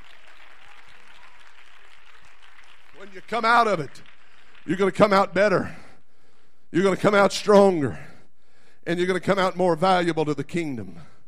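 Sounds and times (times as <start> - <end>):
hands clapping: 0.0 - 5.4
speech: 3.0 - 5.8, 6.7 - 8.1, 8.8 - 11.1.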